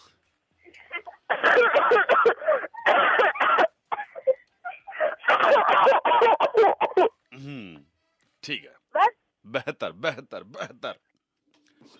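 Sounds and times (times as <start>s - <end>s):
person coughing: 1.3s - 7.1s
speech: 8.4s - 8.8s, 9.5s - 11.1s.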